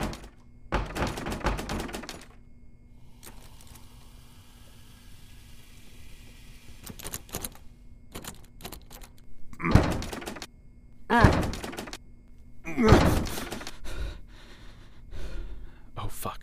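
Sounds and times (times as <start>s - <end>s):
door rattling as pushed and pulled: 0.0s - 2.4s, 6.8s - 10.5s, 11.1s - 12.0s, 12.8s - 13.8s.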